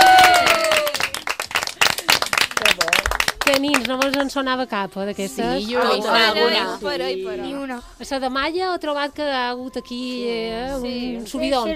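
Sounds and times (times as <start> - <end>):
loud applause: 0.0 - 4.2
speech: 3.6 - 11.7.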